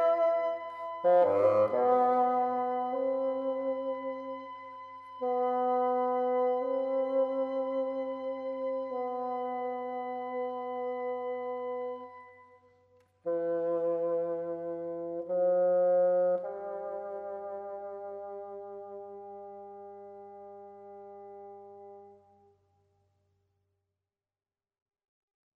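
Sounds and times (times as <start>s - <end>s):
bassoon solo: 0.0s - 12.3s, 13.2s - 22.2s.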